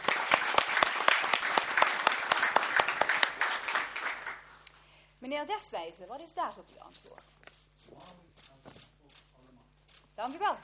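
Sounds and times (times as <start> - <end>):
applause: 0.0 - 4.6
speech: 5.3 - 8.3, 10.2 - 10.6.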